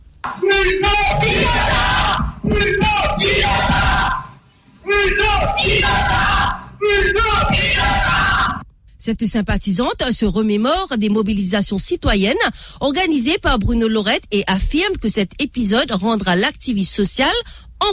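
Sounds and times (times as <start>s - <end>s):
crowd of supporters shouting: 0.3s - 8.6s
speech: 9.1s - 17.9s.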